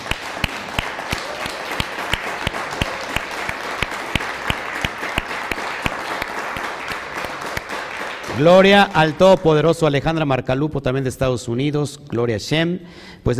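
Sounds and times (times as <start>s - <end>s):
loud applause: 0.0s - 9.5s
speech: 8.4s - 13.3s.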